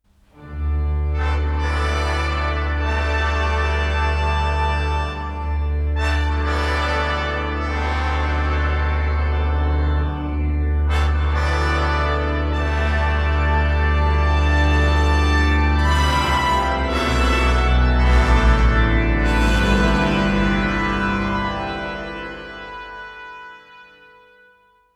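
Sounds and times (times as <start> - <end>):
prelude: 0.4 - 24.6.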